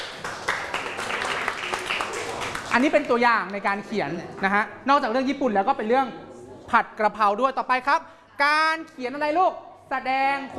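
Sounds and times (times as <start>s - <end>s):
faint clapping from a group of students during a lesson: 0.0s - 3.2s
speech: 2.8s - 10.5s.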